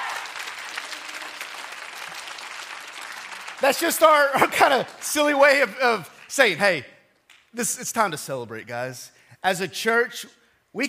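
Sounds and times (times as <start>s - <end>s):
audience applause: 0.0s - 6.6s
speech: 3.6s - 6.9s, 7.5s - 10.8s.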